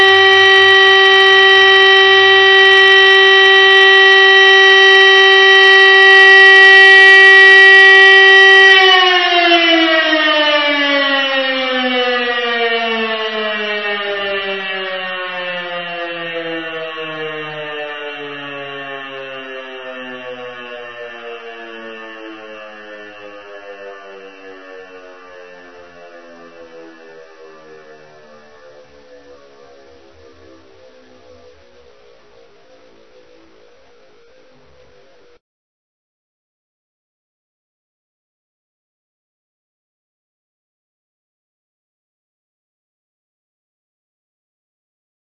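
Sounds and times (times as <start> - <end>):
all-clear siren steady continuous tone: 0.0 - 35.4.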